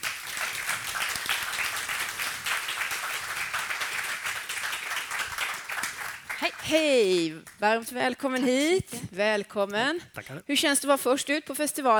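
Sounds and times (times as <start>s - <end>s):
audience applause: 0.0s - 7.1s
speech: 6.4s - 11.9s.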